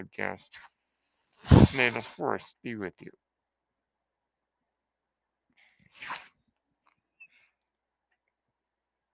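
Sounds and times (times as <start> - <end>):
speech: 0.0 - 0.7, 1.4 - 3.2
mechanical ventilator breath: 0.9 - 2.2.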